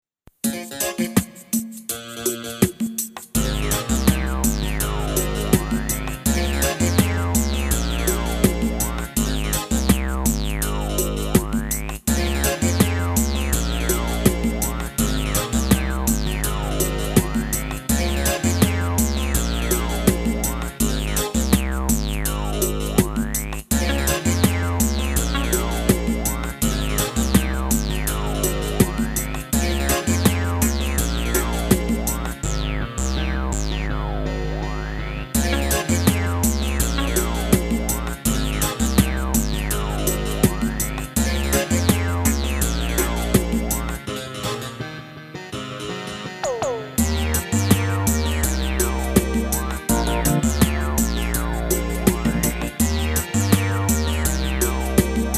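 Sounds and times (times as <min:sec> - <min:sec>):
ragga reggae music: 0:00.4 - 0:55.3.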